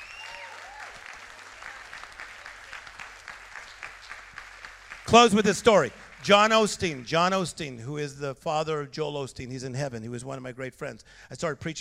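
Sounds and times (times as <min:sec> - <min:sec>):
faint whistles and cheers: 0:00.0 - 0:01.9
audience clapping: 0:00.0 - 0:07.6
speech: 0:05.1 - 0:11.8.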